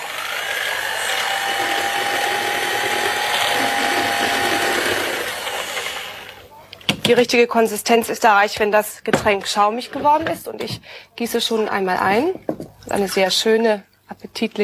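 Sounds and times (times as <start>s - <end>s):
RG28 kitchen mixer blending a drink: 0.0s - 6.5s
speech: 7.1s - 14.6s.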